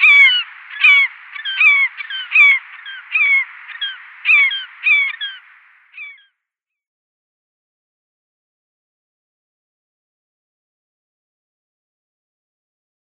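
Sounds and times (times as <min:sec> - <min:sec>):
Glaucous Gull calling: 0:00.0 - 0:06.3.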